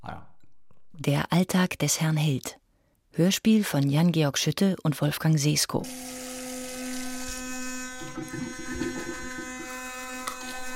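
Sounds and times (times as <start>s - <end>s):
speech: 1.0s - 2.6s, 3.2s - 6.2s
electric toothbrush buzzing: 5.8s - 10.7s.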